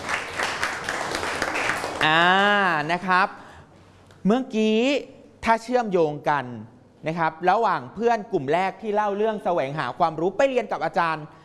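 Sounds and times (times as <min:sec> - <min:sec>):
students in a classroom applauding their classmates: 0:00.0 - 0:03.0
speech: 0:02.0 - 0:03.4, 0:04.2 - 0:11.4.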